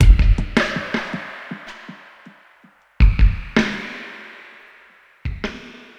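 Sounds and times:
ambient drum loop: 0.0s - 2.3s, 3.0s - 4.0s, 5.3s - 5.9s.

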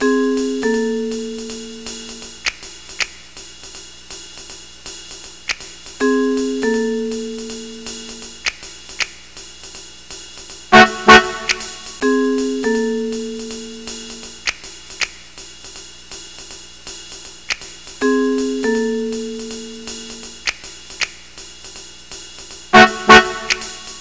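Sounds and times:
hep jazz music: 0.0s - 2.5s, 6.0s - 8.5s, 10.7s - 14.5s, 18.0s - 20.5s, 22.8s - 23.9s.

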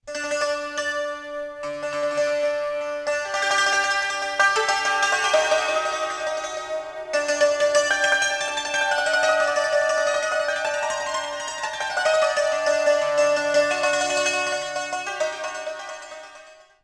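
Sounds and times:
santur: 0.0s - 16.8s.

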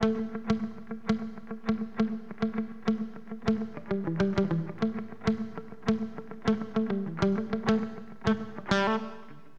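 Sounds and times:
acid jazz funk guitar: 0.0s - 9.4s.

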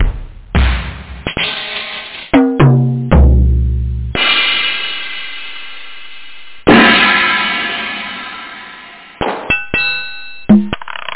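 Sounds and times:
drum: 0.0s - 9.6s, 10.5s - 10.8s.

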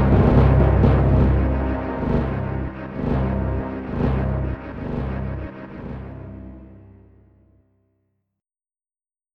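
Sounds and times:
bomb drop: 0.0s - 6.4s.

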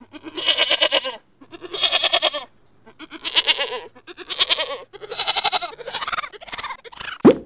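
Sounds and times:
goat bleating: 0.0s - 7.1s.

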